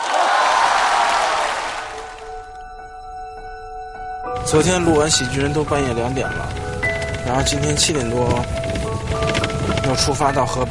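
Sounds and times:
audience applause and cheering: 0:00.0 - 0:02.6
speech: 0:04.5 - 0:06.6, 0:07.2 - 0:10.6.

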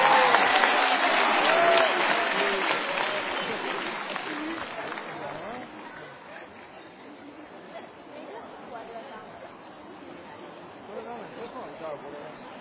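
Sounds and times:
crowd applauding: 0:00.0 - 0:05.9.

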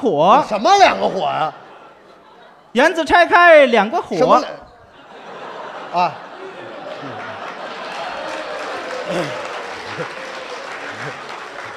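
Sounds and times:
speech: 0:00.0 - 0:01.6, 0:02.8 - 0:04.6, 0:05.9 - 0:06.2, 0:09.1 - 0:09.4, 0:10.0 - 0:10.2
laughter: 0:00.0 - 0:11.7
audience applause: 0:05.2 - 0:11.7.

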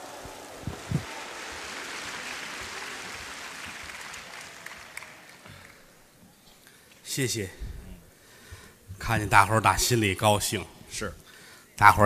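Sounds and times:
audience applause: 0:00.0 - 0:06.2
speech: 0:07.2 - 0:07.7, 0:09.1 - 0:11.2, 0:11.8 - 0:12.0.

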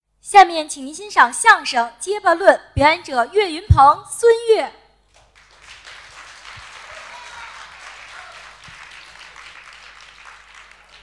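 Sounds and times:
speech: 0:00.2 - 0:04.8
audience applause: 0:05.2 - 0:11.0.

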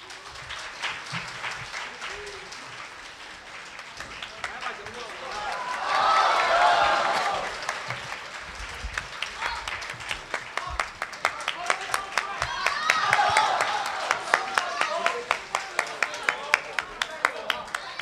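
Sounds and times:
audience clapping: 0:00.0 - 0:18.0
people cheering: 0:00.0 - 0:18.0.

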